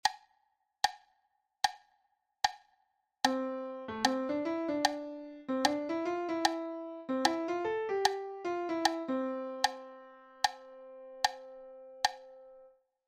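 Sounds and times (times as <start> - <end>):
syncopated rhythm: 3.3 - 12.3.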